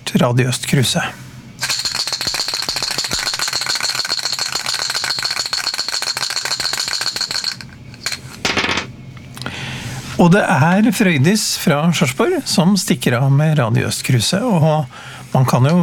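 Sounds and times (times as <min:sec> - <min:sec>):
speech: 0:00.1 - 0:01.3, 0:10.2 - 0:15.8
dice rattling in a cup: 0:01.6 - 0:08.4.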